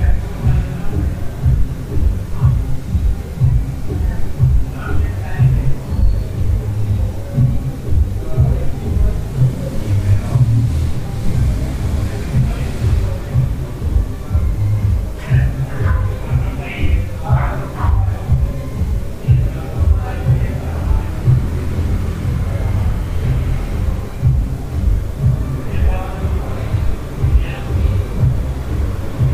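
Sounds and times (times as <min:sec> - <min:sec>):
murmuring voices in a hostel room: 0:00.0 - 0:29.3.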